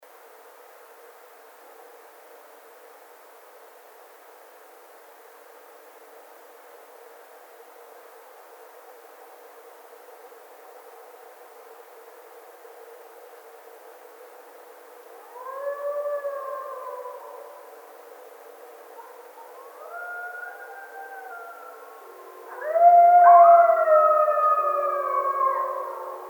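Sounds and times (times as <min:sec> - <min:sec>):
coyote chorus howling: 0:15.2 - 0:26.2.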